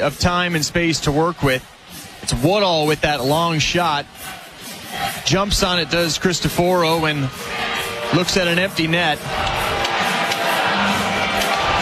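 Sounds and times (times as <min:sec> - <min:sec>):
speech: 0:00.0 - 0:04.4, 0:05.2 - 0:09.8
hockey crowd cheering and shouting: 0:02.2 - 0:11.8
visiting hockey fans chanting in a 7,000-plus seat arena: 0:04.1 - 0:11.8.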